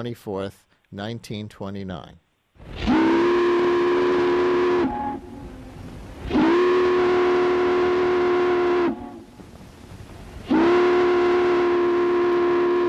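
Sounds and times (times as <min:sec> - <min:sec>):
speech: 0:00.0 - 0:02.9
ferry boat horns off the Hudson River: 0:02.8 - 0:09.3, 0:10.5 - 0:12.8.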